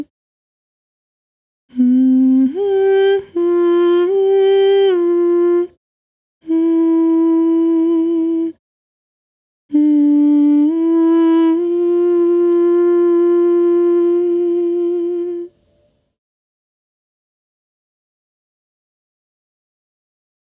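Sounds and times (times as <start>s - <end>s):
intro cue vocals: 1.7s - 5.8s, 6.4s - 8.6s, 9.7s - 15.6s.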